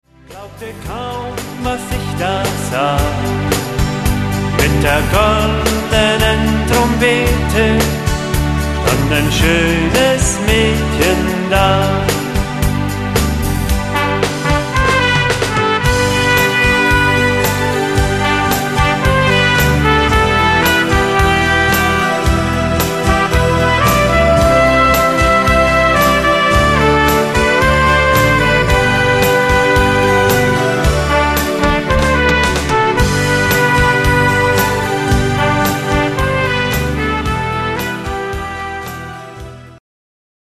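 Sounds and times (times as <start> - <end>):
trumpet melody: 1.3 - 39.8.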